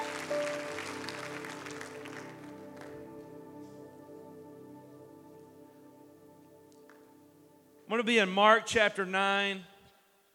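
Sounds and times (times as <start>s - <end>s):
audience applauding: 0.0s - 3.1s
speech: 7.9s - 9.7s.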